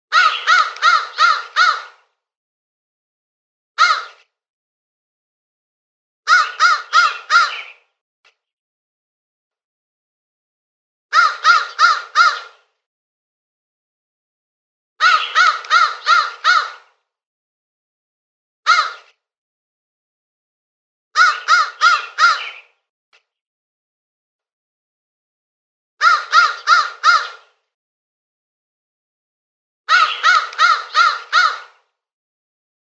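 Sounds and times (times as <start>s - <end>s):
crow cawing: 0.1s - 2.1s, 3.8s - 4.2s, 6.3s - 7.8s, 11.1s - 12.7s, 15.0s - 17.0s, 18.7s - 19.1s, 21.2s - 22.7s, 26.0s - 27.6s, 29.9s - 31.9s.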